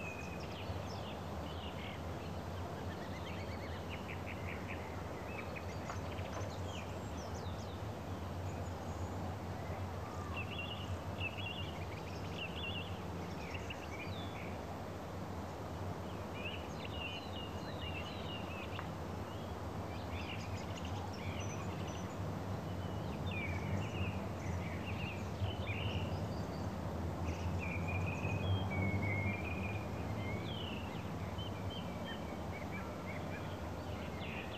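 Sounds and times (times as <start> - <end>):
birds: 0.0 - 34.5
small background cars: 0.0 - 34.5.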